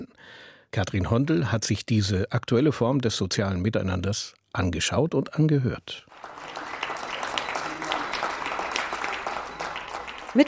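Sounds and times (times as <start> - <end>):
speech: 0.2 - 6.3
applause from balconies for hospital staff: 6.1 - 10.4.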